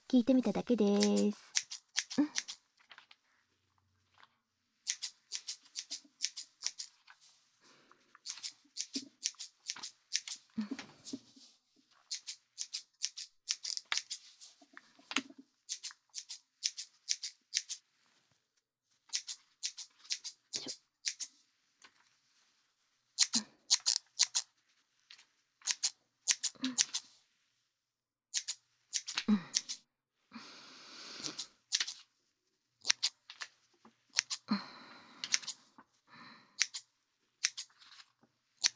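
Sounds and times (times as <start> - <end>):
speech: 0.1 - 1.6
scissors cutting hair: 0.8 - 2.6, 4.9 - 7.0, 8.2 - 10.4, 12.1 - 14.2, 15.7 - 17.8, 19.1 - 21.3, 23.2 - 24.5, 25.6 - 27.0, 28.3 - 29.8, 31.2 - 32.0, 32.8 - 33.1, 34.1 - 34.5, 35.3 - 35.6, 36.6 - 36.8, 37.4 - 37.8.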